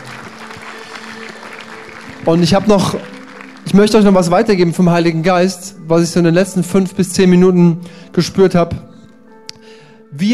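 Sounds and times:
audience applause: 0.0 - 4.8
speech: 2.2 - 3.1, 3.7 - 8.9, 10.1 - 10.3.

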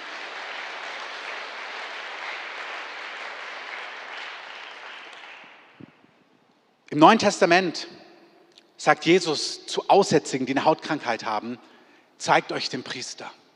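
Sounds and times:
large audience applause: 0.0 - 5.8
speech: 7.0 - 8.0, 8.8 - 13.4.

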